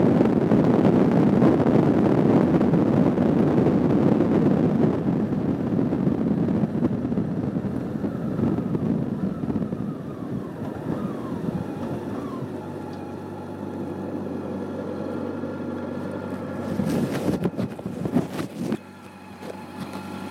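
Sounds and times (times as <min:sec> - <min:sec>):
CB400SF motorcycle riding: 0:00.0 - 0:20.2.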